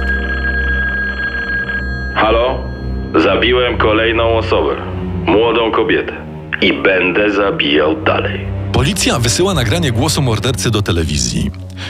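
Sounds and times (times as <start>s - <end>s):
telephone ringing: 0.0s - 4.6s
speech: 3.2s - 11.8s.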